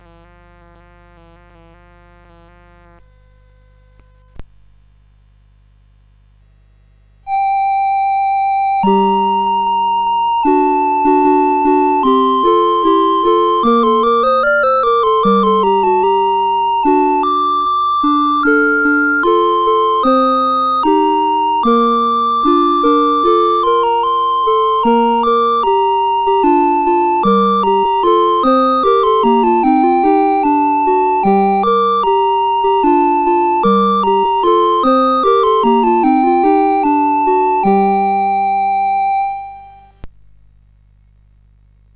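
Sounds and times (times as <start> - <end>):
CSG 8580 sound chip: 7.3 - 40.0.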